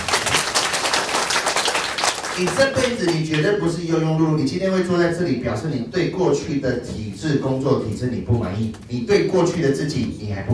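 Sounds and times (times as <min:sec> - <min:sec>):
audience applause: 0:00.0 - 0:03.1
speech: 0:02.4 - 0:10.5.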